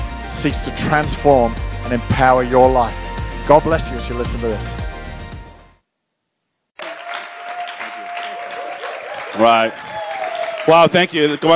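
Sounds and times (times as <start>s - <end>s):
speech: 0.4s - 4.9s, 9.4s - 9.8s, 10.6s - 11.5s
crowd applause: 6.8s - 11.5s.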